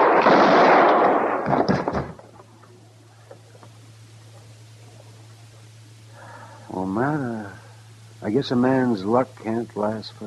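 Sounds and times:
gunfire in a radio drama shootout: 0.0s - 2.4s
speech: 8.3s - 10.2s.

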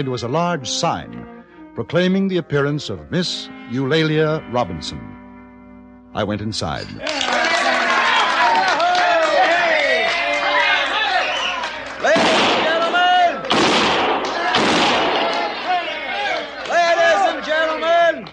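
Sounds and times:
speech: 0.0s - 5.2s, 6.1s - 7.5s
crowd chatter and shouting in a saloon: 6.9s - 18.3s
six-gun revolvers fired inside Skinner's saloon in Virginia City: 12.1s - 15.8s.

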